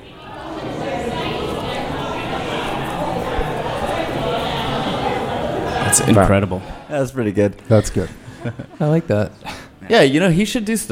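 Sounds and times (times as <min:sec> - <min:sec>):
voice imitating crowd babble: 0:00.0 - 0:06.9
speech: 0:06.0 - 0:10.9
laughter: 0:07.6 - 0:09.8.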